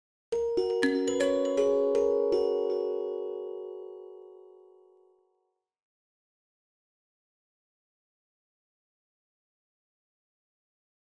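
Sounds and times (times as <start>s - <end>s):
ringtone: 0.4s - 5.1s.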